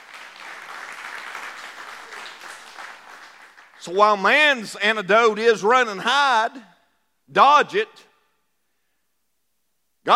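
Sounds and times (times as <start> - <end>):
audience clapping hands in praise: 0.0 - 4.0
speech: 3.8 - 6.7, 7.3 - 8.1.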